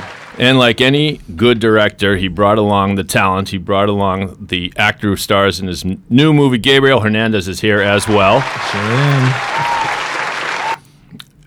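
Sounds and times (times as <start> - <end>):
audience applause: 0.0 - 0.9, 7.7 - 10.8
laughter: 0.0 - 2.4, 7.6 - 10.8
speech: 0.3 - 9.8.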